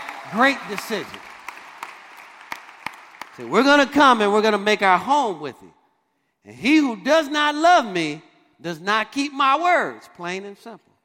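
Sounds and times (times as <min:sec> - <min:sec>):
audience applause: 0:00.0 - 0:03.5
speech: 0:00.3 - 0:01.3, 0:03.4 - 0:05.8, 0:06.4 - 0:10.9.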